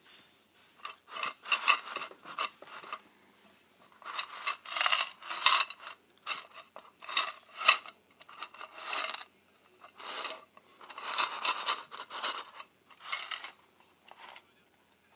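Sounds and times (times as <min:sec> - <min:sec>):
paperclips and safety pins clinking and rattling: 0:00.9 - 0:03.0, 0:03.9 - 0:09.3, 0:09.9 - 0:14.4.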